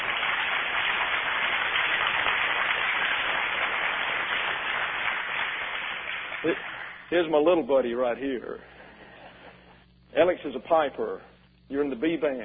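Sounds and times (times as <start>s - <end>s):
audience applause for a young competitor: 0.0s - 7.1s
speech: 6.4s - 8.8s, 10.1s - 12.4s.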